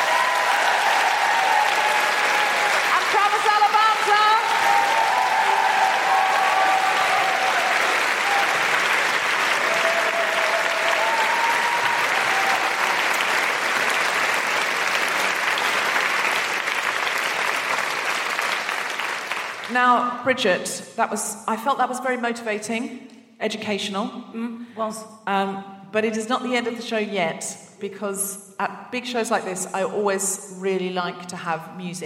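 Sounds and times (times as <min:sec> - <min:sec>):
audience round of applause: 0:00.0 - 0:19.7
speech: 0:19.8 - 0:32.0.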